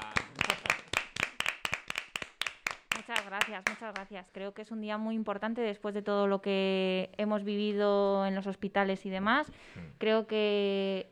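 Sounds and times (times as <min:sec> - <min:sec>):
small audience applause: 0:00.0 - 0:03.8
speech: 0:03.1 - 0:11.0.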